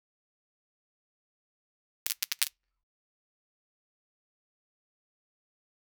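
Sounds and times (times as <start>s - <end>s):
magnet falling to ground: 2.1s - 2.5s.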